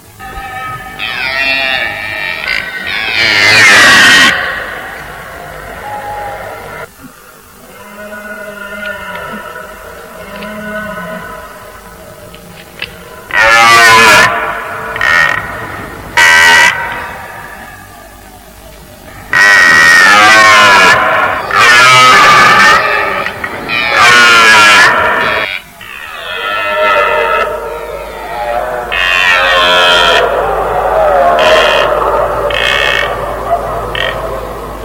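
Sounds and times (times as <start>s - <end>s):
red deer calling: 0.2s - 34.8s.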